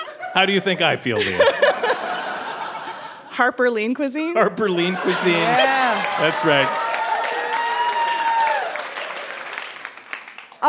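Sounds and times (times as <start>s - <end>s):
laughter: 0.0s - 3.4s, 4.7s - 6.7s
speech: 0.4s - 1.6s, 3.4s - 6.8s
audience applause: 4.8s - 10.6s
high whoop: 5.5s - 9.0s.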